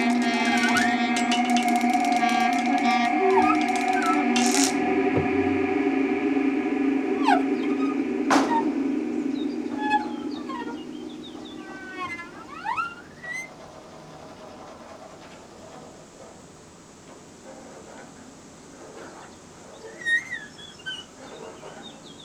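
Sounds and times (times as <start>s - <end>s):
sirens in improvised performances: 0.1s - 11.5s.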